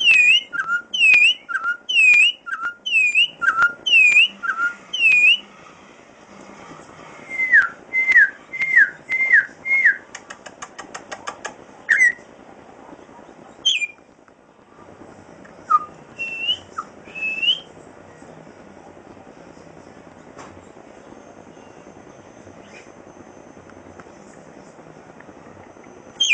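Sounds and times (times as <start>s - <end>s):
Venezuelan troupial song: 0.0s - 5.5s, 7.2s - 10.1s, 11.9s - 12.2s, 13.6s - 14.1s, 15.6s - 17.7s, 21.2s - 23.7s, 25.9s - 26.3s
faint low background hum: 0.0s - 26.3s.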